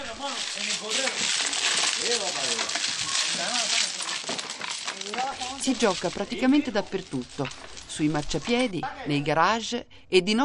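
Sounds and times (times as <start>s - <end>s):
domino tiles clacking on a table: 0.0s - 8.8s
speech: 2.0s - 3.9s, 5.2s - 10.4s.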